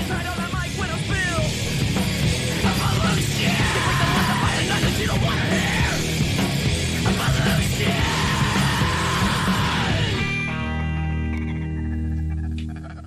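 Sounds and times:
loud distorted heavy band demo track: 0.0s - 13.0s
harsh screamed vocals on band's demo track: 2.6s - 6.2s, 7.0s - 10.9s.

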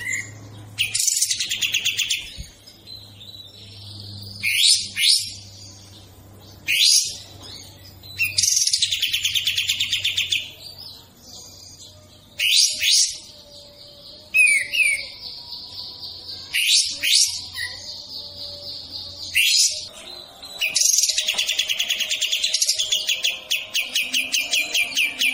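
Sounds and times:
bird song: 0.0s - 25.3s.

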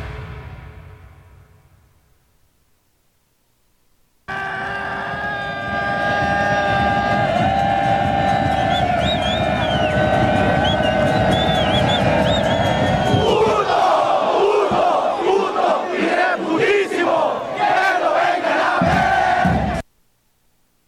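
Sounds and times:
stadium crowd shouting at goalkeeper: 4.3s - 19.8s.

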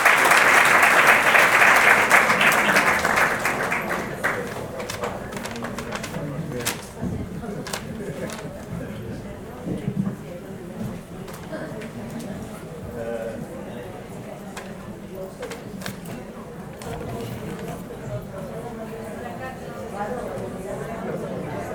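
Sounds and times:
audience applause welcoming a speaker at a health movement assembly: 0.0s - 6.9s.

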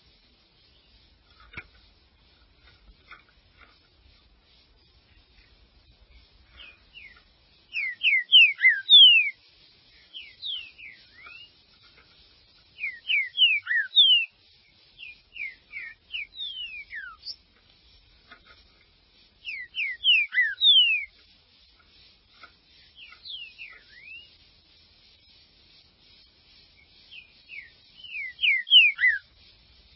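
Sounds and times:
green-winged saltator whistled song: 6.5s - 11.7s, 12.5s - 17.4s, 19.4s - 21.2s, 22.8s - 24.5s, 26.2s - 29.4s.

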